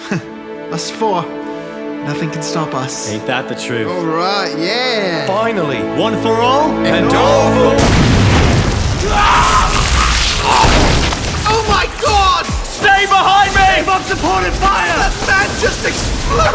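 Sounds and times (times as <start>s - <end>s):
speech: 0.8s - 8.1s, 9.0s - 9.6s, 14.0s - 16.5s
battle noise in an audio drama: 7.0s - 16.5s
explosion in an audio drama battle: 7.8s - 16.5s
people shouting in an audio drama battle: 9.0s - 16.5s.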